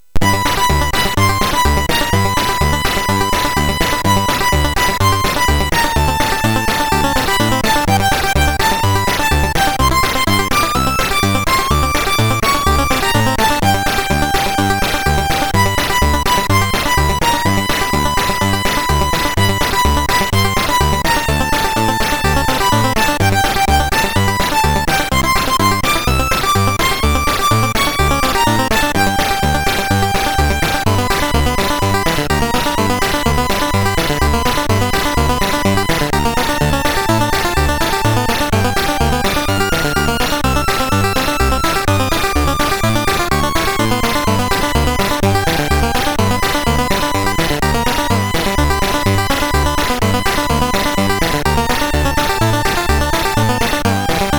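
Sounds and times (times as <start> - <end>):
MOS6581R3 SID chip synth sample: 0.2 - 54.3.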